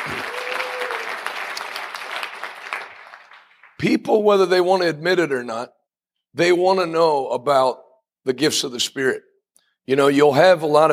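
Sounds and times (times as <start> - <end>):
audience applause: 0.0 - 3.8
speech: 3.8 - 9.3, 9.9 - 10.9.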